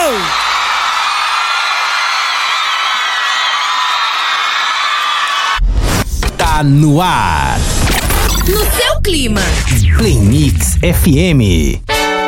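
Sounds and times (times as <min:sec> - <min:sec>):
large crowd cheering and whooping: 0:00.0 - 0:05.6
speech: 0:06.6 - 0:11.9.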